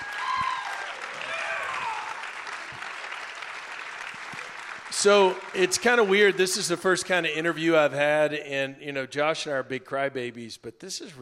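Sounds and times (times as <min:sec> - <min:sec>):
audience applause: 0:00.0 - 0:07.7
speech: 0:05.0 - 0:11.2.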